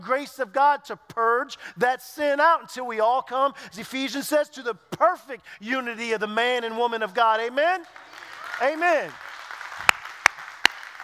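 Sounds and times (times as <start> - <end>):
speech: 0.0 - 9.3
hand claps: 7.8 - 11.0.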